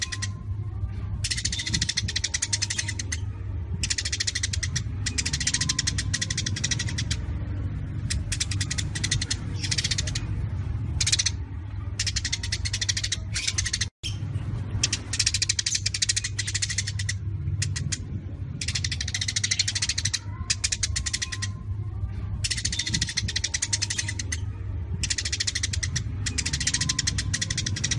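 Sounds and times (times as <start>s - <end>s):
Eurasian tree sparrows chattering: 0.0s - 0.5s, 1.2s - 21.8s, 22.4s - 27.9s.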